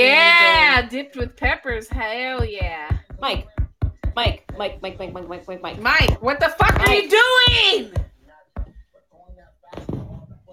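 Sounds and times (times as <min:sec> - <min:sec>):
hammer banging on a wall: 0:00.5 - 0:08.8
speech: 0:00.9 - 0:03.6, 0:04.2 - 0:08.1.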